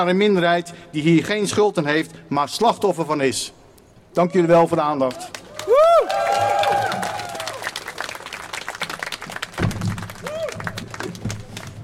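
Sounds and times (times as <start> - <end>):
speech: 0.0 - 3.6, 4.2 - 5.8
applause: 5.1 - 11.8.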